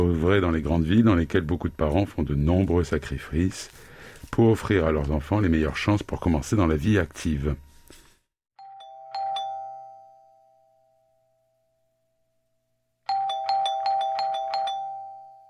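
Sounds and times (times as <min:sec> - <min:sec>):
speech: 0:00.0 - 0:07.6
doorbell chiming: 0:08.6 - 0:12.0, 0:13.1 - 0:15.4.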